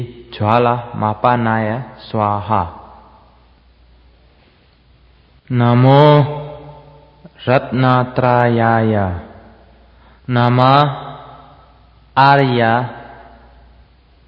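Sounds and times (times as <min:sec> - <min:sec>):
mantra chanting: 0:00.0 - 0:03.4, 0:05.4 - 0:09.6, 0:10.2 - 0:13.7.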